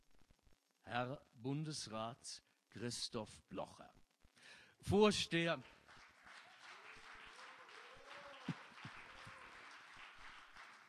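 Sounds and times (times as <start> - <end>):
speech: 0.9 - 5.8
audience applause: 5.8 - 10.8
people shouting cheers: 7.6 - 9.6.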